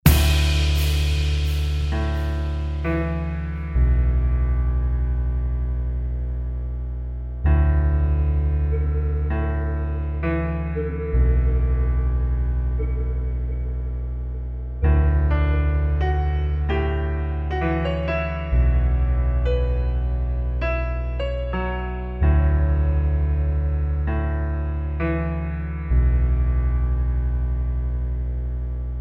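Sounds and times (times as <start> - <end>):
relaxing piano music: 0.0 - 29.0.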